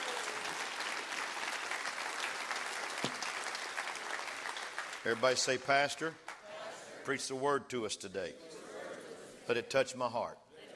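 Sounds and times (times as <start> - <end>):
audience clapping hands: 0.0 - 6.5
speech: 5.0 - 6.2, 7.1 - 8.6, 9.5 - 10.4.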